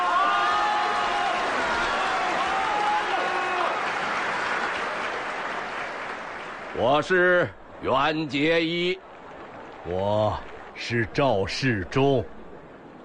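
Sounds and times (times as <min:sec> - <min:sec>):
audience applause: 0:00.0 - 0:07.1
speech: 0:06.8 - 0:09.0, 0:09.8 - 0:12.4.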